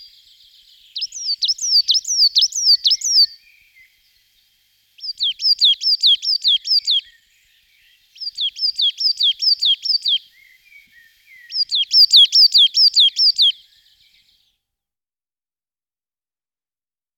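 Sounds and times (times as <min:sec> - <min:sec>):
coal tit Periparus ater calling: 0:00.0 - 0:03.4, 0:05.0 - 0:07.1, 0:08.0 - 0:13.6.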